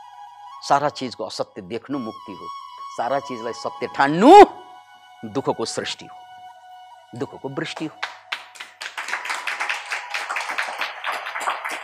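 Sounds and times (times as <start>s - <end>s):
speech: 0.6s - 4.6s, 5.2s - 6.2s, 7.1s - 8.2s
audience clapping: 7.6s - 11.8s.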